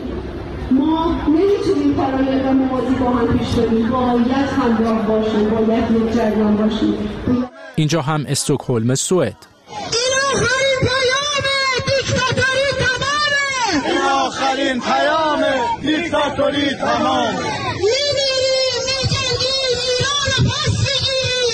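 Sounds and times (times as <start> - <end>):
speech: 1.0 - 11.0, 13.7 - 18.2
crowd shouting and cheering: 8.7 - 21.5
large crowd chanting a protest slogan: 13.7 - 17.8.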